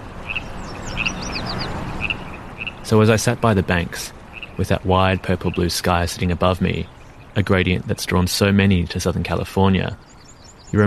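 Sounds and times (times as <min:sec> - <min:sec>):
river water rushing: 0:00.0 - 0:04.6
Baja California frogs calling: 0:00.0 - 0:10.8
speech: 0:02.9 - 0:10.8.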